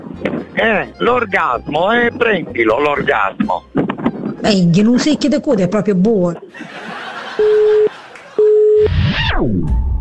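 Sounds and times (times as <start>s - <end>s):
speech: 0.2s - 3.8s, 4.4s - 7.6s, 8.8s - 9.8s
laughter: 3.8s - 4.5s, 6.2s - 8.5s
telephone line beeps as a prank call is placed: 7.4s - 9.0s.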